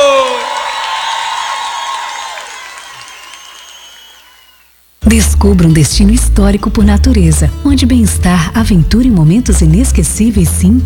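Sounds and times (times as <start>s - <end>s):
audience applause and cheering: 0.0s - 4.8s
speech: 5.1s - 10.8s.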